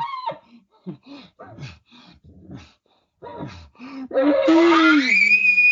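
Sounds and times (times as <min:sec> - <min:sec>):
person imitating a cow: 0:04.2 - 0:05.5.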